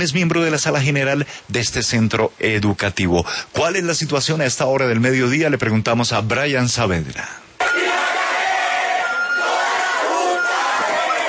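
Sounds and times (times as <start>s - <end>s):
speech: 0.0s - 7.5s
student protesters chanting in university plaza: 7.6s - 11.2s
student protesters applauding in university plaza: 9.1s - 11.2s.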